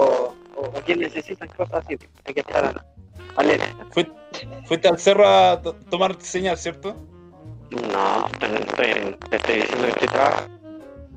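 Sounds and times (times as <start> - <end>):
robotic distorted voice talking in Spanish over a poor connection: 0.0 - 4.0, 7.7 - 10.5
speech: 0.8 - 7.1, 7.7 - 10.6.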